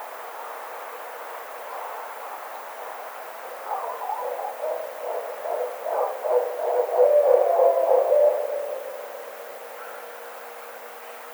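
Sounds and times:
barred owl hooting: 0:03.6 - 0:10.3.

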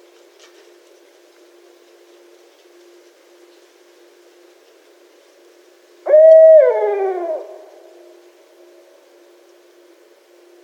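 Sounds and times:
barred owl hooting: 0:06.0 - 0:08.3.

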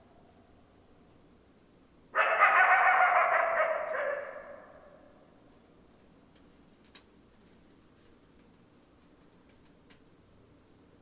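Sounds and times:
coyote chorus howling and yipping: 0:02.2 - 0:05.2.

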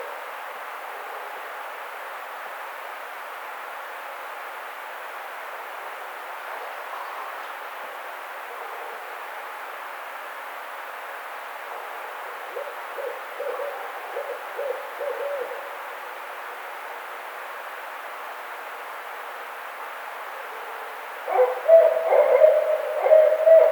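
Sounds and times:
Barred Owl calling: 0:12.5 - 0:15.7, 0:21.3 - 0:23.7.

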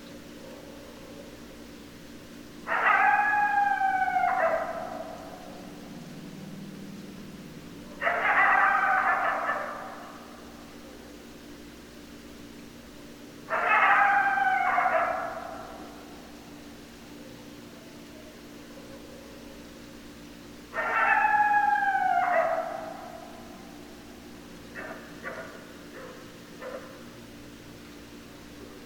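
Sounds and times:
coyotes howling and yipping in chorus: 0:02.6 - 0:11.3, 0:13.4 - 0:20.0, 0:20.7 - 0:27.3.

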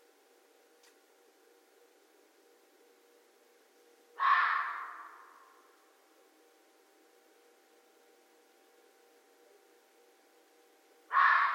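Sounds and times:
red fox barking: 0:04.2 - 0:05.7, 0:11.1 - 0:11.5.

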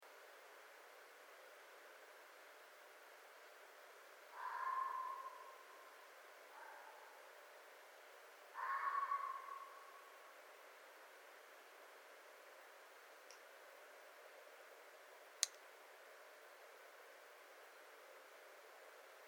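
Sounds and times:
red fox calling: 0:04.3 - 0:07.2, 0:08.5 - 0:10.2.

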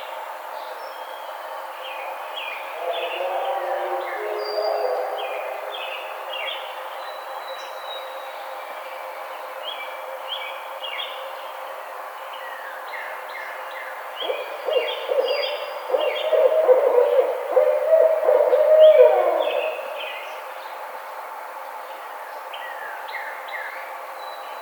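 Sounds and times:
Barred Owl calling: 0:02.7 - 0:06.2, 0:14.2 - 0:20.1.

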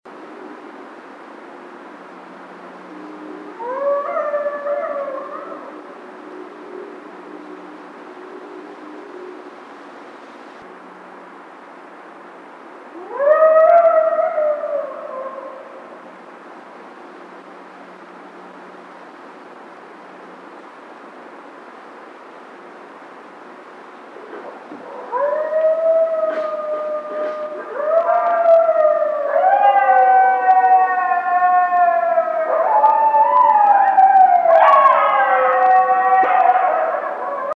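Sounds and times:
coyote howling: 0:03.0 - 0:06.1, 0:12.9 - 0:15.9, 0:24.4 - 0:37.5.

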